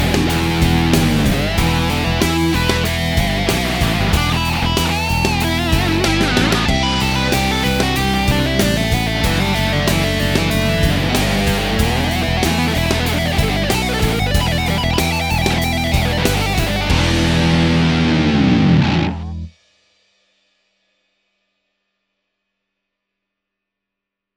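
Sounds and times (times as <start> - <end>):
Keeley Vox wah pedal effect: 0.0 - 19.5.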